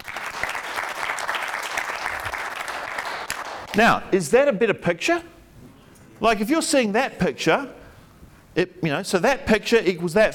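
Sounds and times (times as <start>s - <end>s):
audience clapping: 0.0s - 3.9s
speech: 3.8s - 5.4s, 6.2s - 7.8s, 8.6s - 10.3s.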